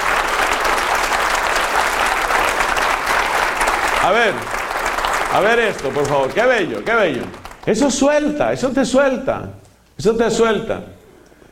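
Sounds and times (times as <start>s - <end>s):
audience applauding: 0.0s - 8.3s
speech: 4.0s - 4.6s, 5.3s - 11.0s.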